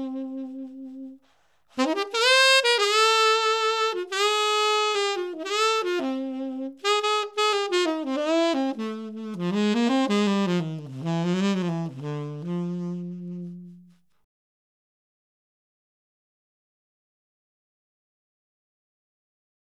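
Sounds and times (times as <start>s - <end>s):
instrumental saxophone: 0.0s - 14.1s.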